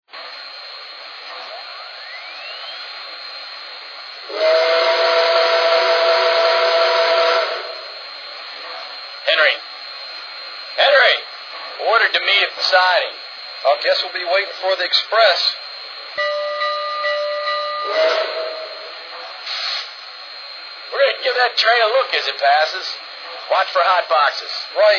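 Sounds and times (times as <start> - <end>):
trains in Berk: 0.1 - 24.9.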